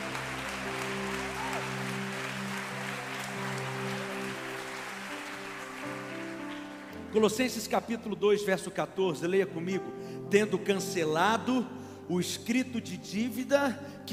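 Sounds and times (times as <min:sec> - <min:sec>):
audience applauding: 0:00.0 - 0:07.7
speech: 0:07.1 - 0:14.1.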